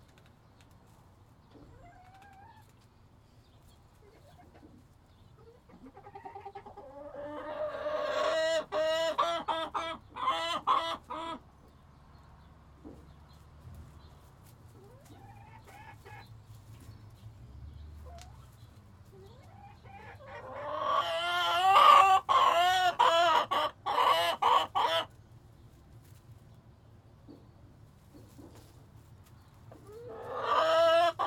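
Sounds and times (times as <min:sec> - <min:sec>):
chicken squawking: 0:05.6 - 0:11.4, 0:19.2 - 0:25.2, 0:29.8 - 0:31.2.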